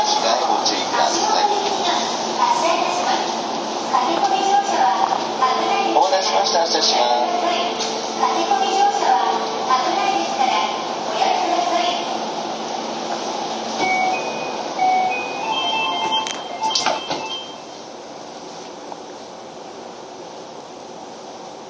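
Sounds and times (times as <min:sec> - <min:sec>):
Keio 5000 series train running noise: 0:00.0 - 0:21.6
steady humming tones: 0:00.0 - 0:21.6
higher whine: 0:13.5 - 0:17.8.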